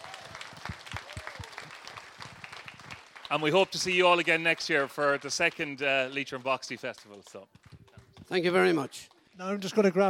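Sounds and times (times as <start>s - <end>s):
audience applause: 0.0s - 10.0s
speech: 3.3s - 7.6s, 8.3s - 10.0s.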